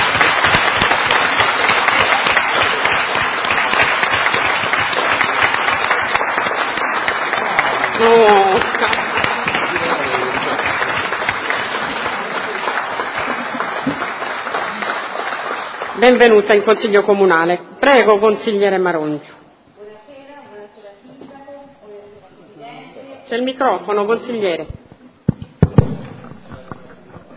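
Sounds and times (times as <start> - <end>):
applause in a council chamber: 0.0 - 16.7
speech: 16.1 - 19.4, 23.3 - 24.8.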